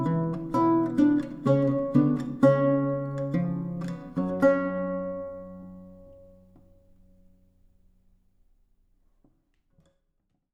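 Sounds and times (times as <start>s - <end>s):
lute playing: 0.0s - 7.2s.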